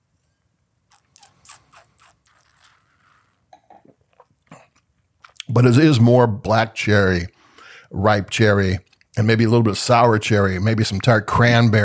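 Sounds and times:
person sipping Pinot Noir wine: 0:00.9 - 0:05.5
speech: 0:05.6 - 0:11.8.

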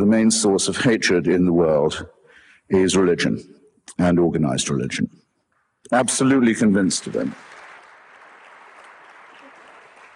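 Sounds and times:
speech: 0:00.0 - 0:05.2, 0:05.8 - 0:07.6
audience applause: 0:06.3 - 0:10.1.

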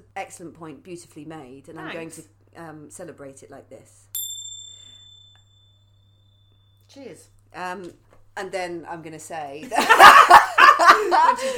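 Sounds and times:
speech: 0:00.2 - 0:04.1, 0:06.9 - 0:11.5
small bell ding: 0:04.2 - 0:07.0
laughter: 0:09.6 - 0:11.5.

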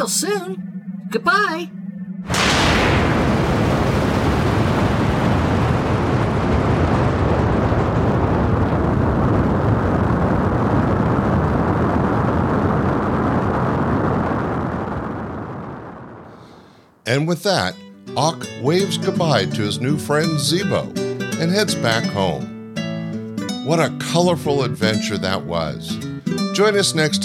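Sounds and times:
speech: 0:00.0 - 0:03.0, 0:17.1 - 0:22.5, 0:23.6 - 0:27.2
rocket ship blasting off: 0:00.0 - 0:16.8.

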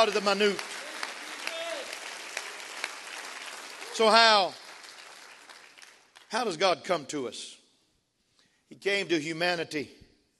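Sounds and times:
speech: 0:00.0 - 0:00.7, 0:04.0 - 0:04.6, 0:06.3 - 0:07.6, 0:08.7 - 0:10.0
audience hand clap: 0:00.0 - 0:06.6.

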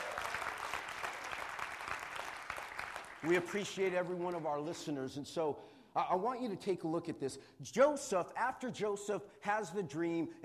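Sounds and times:
audience round of applause: 0:00.0 - 0:04.4
speech: 0:03.2 - 0:10.4.

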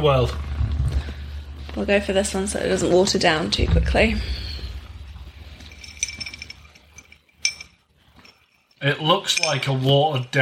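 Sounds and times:
speech: 0:00.0 - 0:00.5, 0:01.8 - 0:04.4, 0:08.8 - 0:10.3
low rumbling background: 0:00.0 - 0:07.8
beer glass clinking while being set down: 0:04.9 - 0:09.8.

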